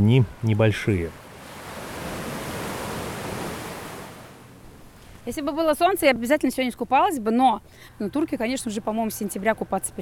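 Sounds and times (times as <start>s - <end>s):
speech: 0.0s - 1.2s, 5.3s - 9.9s
sea waves breaking on shore: 1.0s - 4.6s.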